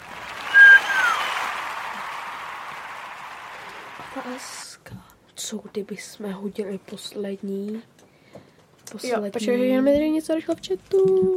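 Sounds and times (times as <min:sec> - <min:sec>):
hands clapping: 0:00.0 - 0:04.5
speech: 0:04.3 - 0:04.7, 0:05.5 - 0:08.0, 0:08.9 - 0:11.3.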